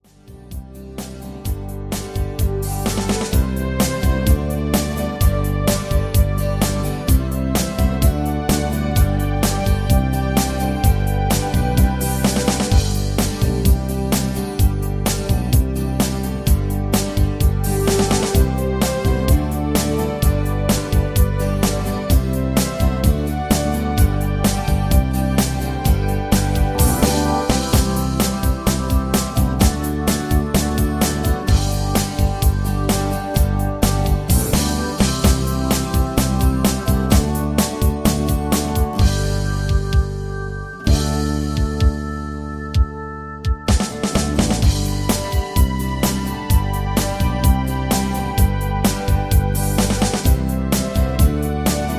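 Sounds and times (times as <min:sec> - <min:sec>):
instrumental music without leads: 0:00.0 - 0:51.9.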